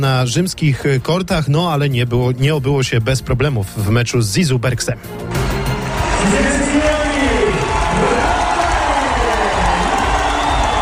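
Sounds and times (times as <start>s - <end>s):
speech: 0.0s - 5.6s, 6.2s - 6.9s
tennis stadium crowd cheering: 5.4s - 10.7s.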